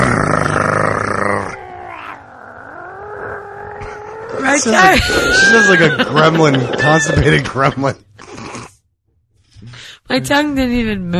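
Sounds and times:
person imitating a dog growling: 0.0s - 4.9s
speech: 4.6s - 8.1s, 10.2s - 11.1s
laughter: 4.8s - 8.0s.

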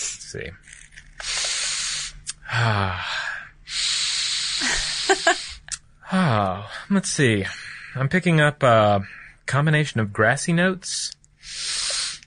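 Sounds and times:
speech: 0.3s - 0.8s, 2.5s - 3.8s, 6.1s - 11.6s
person sniffing a book: 1.2s - 2.4s, 3.7s - 5.7s, 11.4s - 12.2s.

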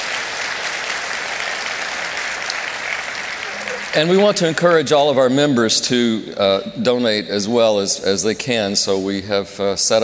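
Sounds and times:
round of applause: 0.0s - 5.2s
speech: 3.9s - 10.0s.

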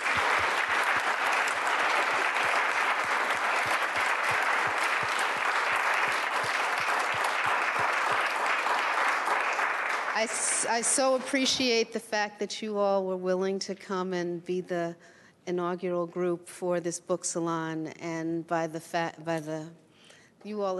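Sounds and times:
audience applause: 0.0s - 10.8s
speech: 10.2s - 19.8s, 20.4s - 20.7s.

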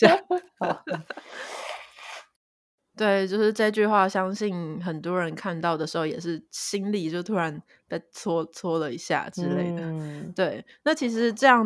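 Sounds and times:
speech: 0.0s - 1.0s, 3.0s - 11.6s
laughter: 0.0s - 1.4s
nose blowing: 1.1s - 2.4s.

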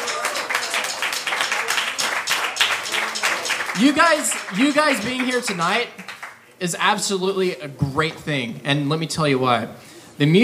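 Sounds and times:
audience round of applause: 0.0s - 6.4s
speech: 3.8s - 6.0s, 6.6s - 10.4s.

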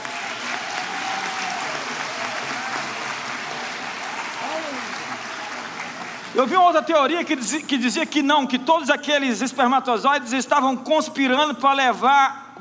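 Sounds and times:
audience applause: 0.0s - 6.5s
speech: 6.4s - 12.5s.

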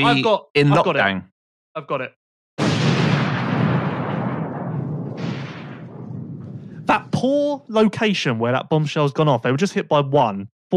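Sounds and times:
speech: 0.0s - 2.2s, 6.9s - 10.7s
thunder: 2.6s - 7.2s.

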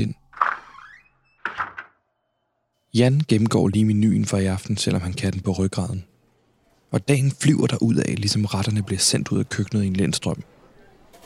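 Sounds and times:
speech: 0.0s - 0.2s, 2.9s - 6.1s, 6.9s - 10.6s
back door creaking open: 0.0s - 2.1s
back door shutting with solid knocks: 0.3s - 2.0s.

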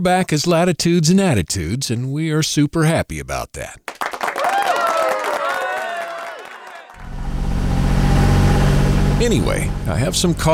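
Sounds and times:
speech: 0.0s - 4.1s, 9.2s - 10.5s
crowd noise: 4.0s - 7.1s
sailboat engine droning, motoring in zero wind and light fog: 7.0s - 10.5s.

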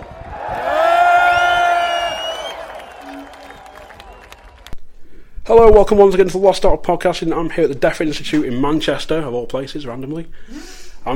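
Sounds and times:
audience applause: 0.0s - 4.8s
crowd cheering and whooping: 0.0s - 4.8s
speech: 5.5s - 11.1s.

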